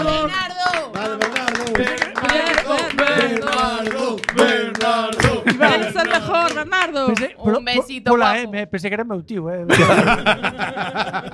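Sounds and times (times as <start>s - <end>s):
applause: 0.2s - 7.3s
laughter: 1.0s - 7.4s, 9.7s - 11.3s
speech: 4.9s - 11.3s.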